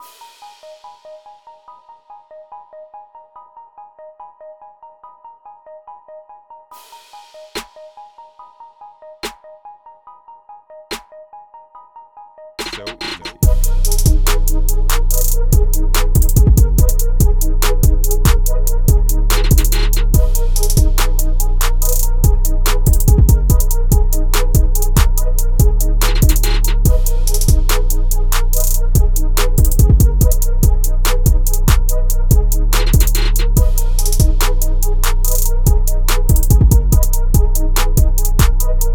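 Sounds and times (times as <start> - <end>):
hip hop trap beat: 12.6 - 38.9.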